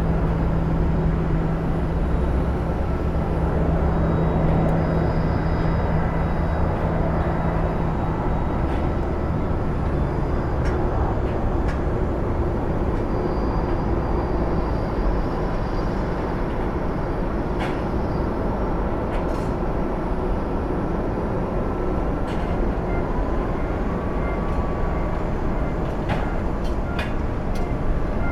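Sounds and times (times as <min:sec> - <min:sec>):
Haneda Airport Terminal 1 observation deck ambience in Tokyo: 0:00.0 - 0:28.3.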